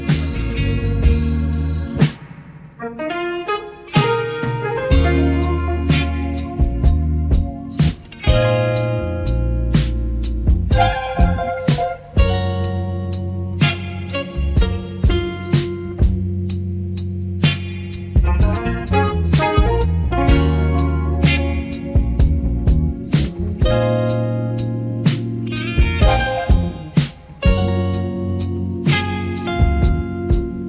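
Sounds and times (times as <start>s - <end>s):
background music: 0.0s - 30.6s.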